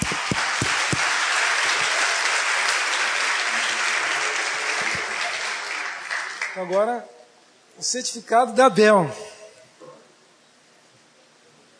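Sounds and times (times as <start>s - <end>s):
audience applause: 0.0s - 6.9s
speech: 6.6s - 7.2s, 7.8s - 9.2s.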